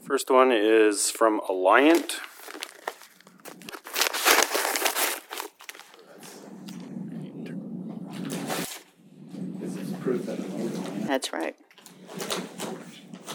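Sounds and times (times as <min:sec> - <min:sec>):
speech: 0:00.1 - 0:02.3, 0:11.1 - 0:11.7
paper crinkling: 0:01.8 - 0:06.9
low murmur: 0:05.8 - 0:13.3.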